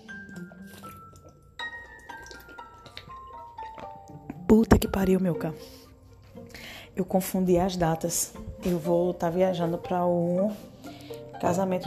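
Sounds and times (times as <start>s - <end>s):
person sipping water from a glass: 0.1s - 4.4s
speech: 4.5s - 5.8s, 7.0s - 10.7s, 11.4s - 11.8s.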